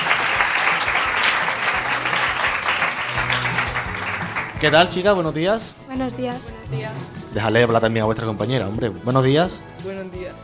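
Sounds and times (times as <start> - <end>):
applause: 0.0 - 5.0
speech: 4.6 - 10.4.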